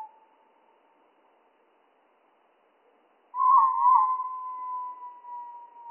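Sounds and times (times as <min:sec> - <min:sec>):
spotted flycatcher song: 0:03.4 - 0:05.2.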